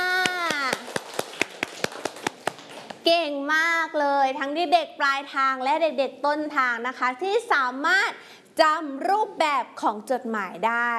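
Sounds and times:
children in a classroom lesson clapping in a steady quick rhythm: 0.0 - 3.0
speech: 3.1 - 10.9.

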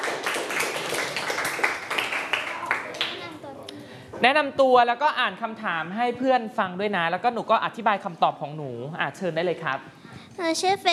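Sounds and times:
audience applause for a student group: 0.0 - 3.2
speech: 4.2 - 10.9.

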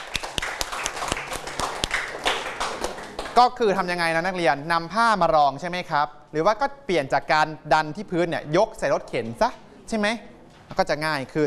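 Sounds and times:
classroom students clapping: 0.0 - 3.5
speech: 3.4 - 11.4.

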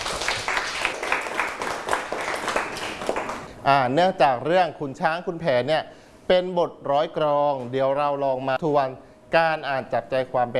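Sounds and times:
classroom students clapping for classmates: 0.0 - 3.5
speech: 3.6 - 10.5.

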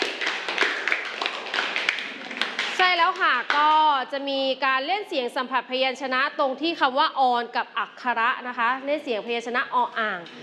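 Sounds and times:
people clapping for a group: 0.0 - 3.9
speech: 3.1 - 10.4.

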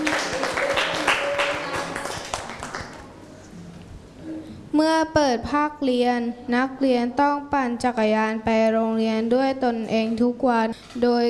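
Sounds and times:
classroom clapping: 0.0 - 3.2
speech: 5.0 - 11.2.

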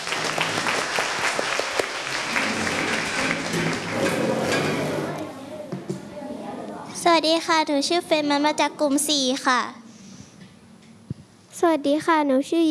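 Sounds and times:
classroom applause: 0.0 - 4.8
speech: 7.2 - 9.8, 11.6 - 12.6.

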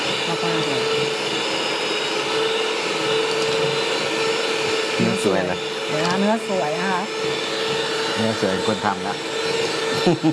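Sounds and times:
blender motor labouring through a small batch of thick mixture: 0.0 - 10.3
speech: 5.2 - 10.3.

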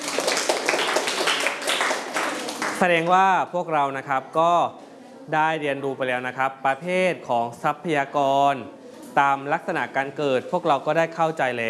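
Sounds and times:
students clapping hands: 0.0 - 3.1
speech: 2.8 - 11.6.

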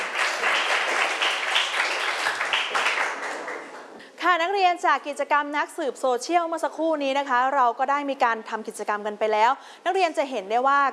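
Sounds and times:
group of students applauding a classmate: 0.0 - 3.9
speech: 4.4 - 10.9.

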